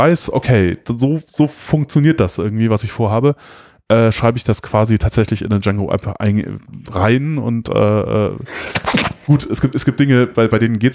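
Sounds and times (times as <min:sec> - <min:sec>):
speech: 0:00.0 - 0:10.9
sneeze: 0:08.7 - 0:09.3.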